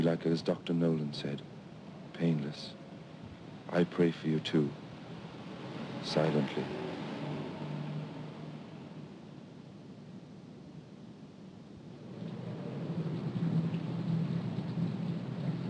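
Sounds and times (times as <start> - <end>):
speech: 0.0 - 1.6, 2.2 - 2.8, 3.7 - 4.8, 6.0 - 6.8
rain: 0.0 - 10.8, 11.7 - 15.6
wind: 0.0 - 15.6.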